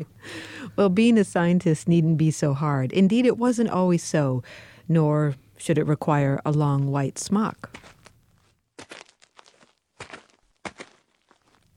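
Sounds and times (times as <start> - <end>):
speech: 0.0 - 8.0
footsteps walking with scuffing steps: 7.6 - 11.7.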